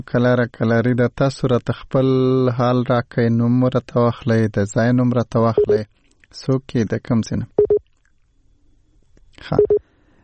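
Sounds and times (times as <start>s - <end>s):
speech: 0.0s - 7.6s, 9.4s - 9.8s
telephone line beeps after a call is cut off: 5.6s - 5.8s, 7.6s - 7.8s, 9.5s - 9.8s.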